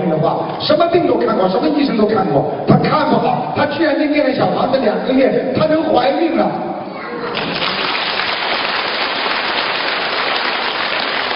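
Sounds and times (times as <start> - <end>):
speech: 0.1 - 6.7
crowd applause: 7.3 - 11.3.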